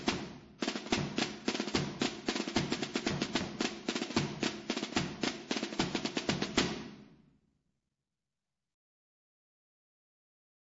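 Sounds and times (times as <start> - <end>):
drums in Albalate: 0.0 - 7.2.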